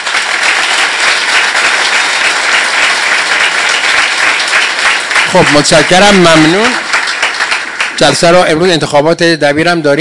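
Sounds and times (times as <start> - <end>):
audience applause at a meeting: 0.0 - 8.7
speech: 5.3 - 6.9, 8.0 - 9.9.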